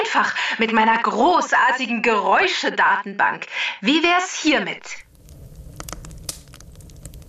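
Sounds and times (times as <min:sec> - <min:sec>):
speech: 0:00.1 - 0:05.0
fire crackling and popping: 0:05.0 - 0:07.2
low steady rumble: 0:05.0 - 0:07.2.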